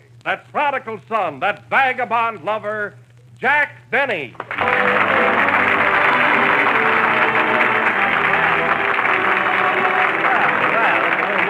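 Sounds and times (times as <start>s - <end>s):
speech: 0.2s - 5.7s
studio audience applauding Jack Benny's entrance on a radio comedy show: 4.4s - 11.4s.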